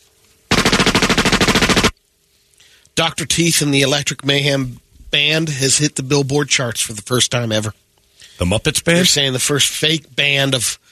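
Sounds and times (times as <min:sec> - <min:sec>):
automatic gunfire sound effect: 0:00.5 - 0:02.0
speech: 0:03.0 - 0:10.9.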